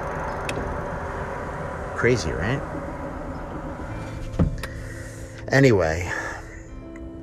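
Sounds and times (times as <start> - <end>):
loud pressurized steam from pipes: 0.6 - 5.5
speech: 2.0 - 2.9, 5.5 - 6.2.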